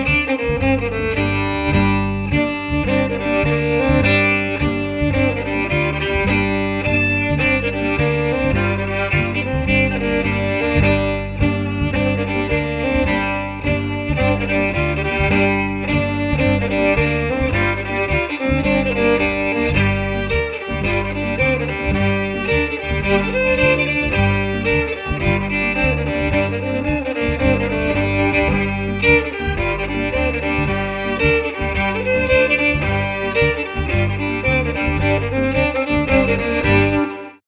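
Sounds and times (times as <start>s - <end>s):
fiddle: 0.0s - 37.4s.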